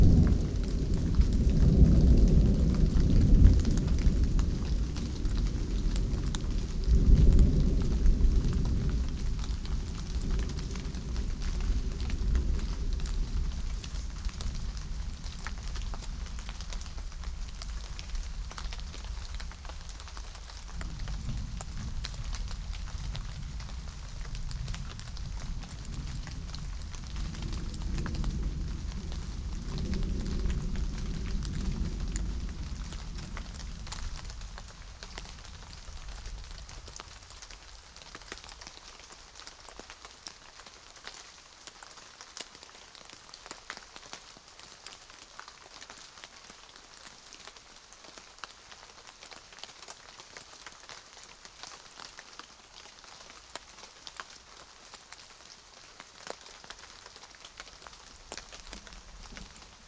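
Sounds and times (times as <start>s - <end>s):
thunderstorm: 0.0s - 38.6s, 57.8s - 59.8s.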